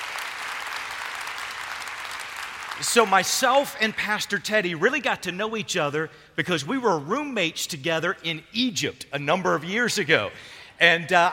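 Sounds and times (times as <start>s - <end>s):
church congregation applauding its worship leaders: 0.0s - 4.3s
speech: 2.8s - 11.3s.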